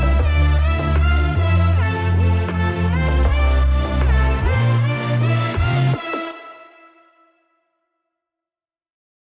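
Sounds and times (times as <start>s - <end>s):
heavy electronic music: 0.0s - 7.3s.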